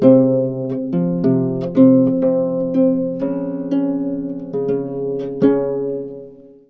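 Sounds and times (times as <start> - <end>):
lute playing: 0.0 - 6.6.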